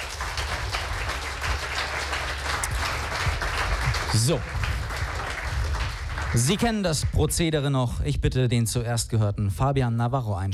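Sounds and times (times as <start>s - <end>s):
audience applause: 0.0s - 7.1s
speech: 4.1s - 4.6s, 6.3s - 10.5s.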